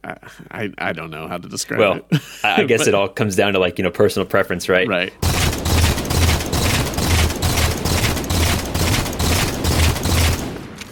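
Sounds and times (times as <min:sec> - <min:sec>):
speech: 0:00.1 - 0:05.3
video game gunfire: 0:05.2 - 0:10.9.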